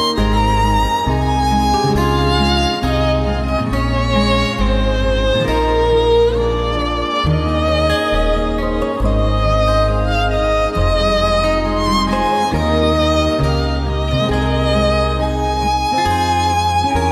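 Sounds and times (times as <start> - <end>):
violins: 0.0 - 17.1.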